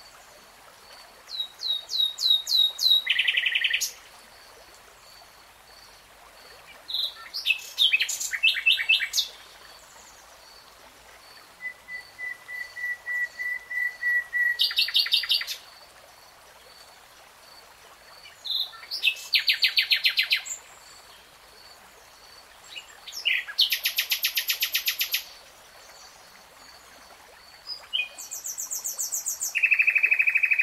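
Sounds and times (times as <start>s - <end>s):
nightingale song: 1.3s - 4.0s, 6.9s - 10.1s, 11.6s - 15.7s, 18.2s - 21.2s, 22.6s - 26.2s, 27.6s - 30.6s.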